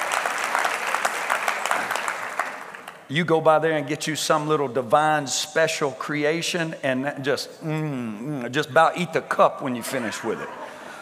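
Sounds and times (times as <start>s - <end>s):
crowd applauding: 0.0s - 3.1s
speech: 3.1s - 10.7s
laughter: 9.8s - 11.0s.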